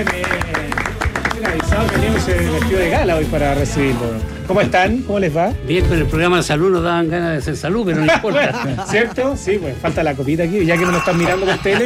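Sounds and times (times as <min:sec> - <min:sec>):
speech: 0:00.0 - 0:00.7, 0:01.8 - 0:11.8
audience applause welcoming a band: 0:00.0 - 0:02.9
laughter: 0:07.9 - 0:09.5, 0:11.0 - 0:11.8.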